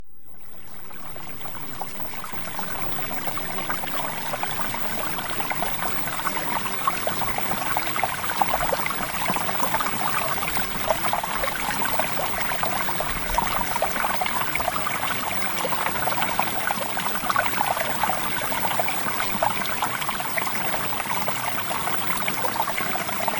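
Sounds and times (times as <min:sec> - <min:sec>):
water: 0:00.2 - 0:23.3.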